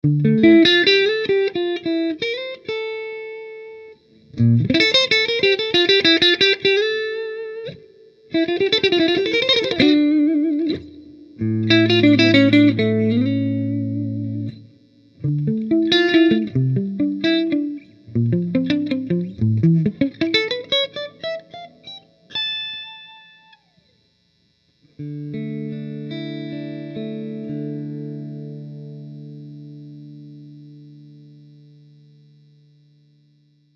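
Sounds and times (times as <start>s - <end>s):
clean guitar through a Fuchs Clean Machine amplifier: 0.0s - 33.7s.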